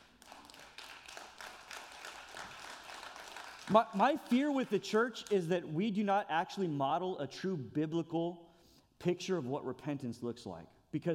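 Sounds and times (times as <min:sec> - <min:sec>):
audience clapping: 0:00.0 - 0:05.5
speech: 0:03.7 - 0:08.4, 0:09.0 - 0:11.1.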